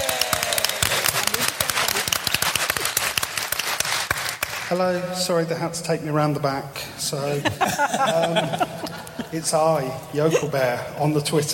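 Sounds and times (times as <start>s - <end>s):
crowd applauding: 0.0s - 4.9s
speech: 4.7s - 11.5s
laughter: 7.2s - 10.8s.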